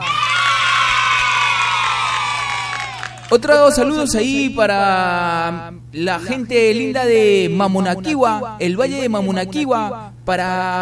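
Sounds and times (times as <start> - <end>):
applause and cheering: 0.0 - 3.4
speech: 3.3 - 10.8.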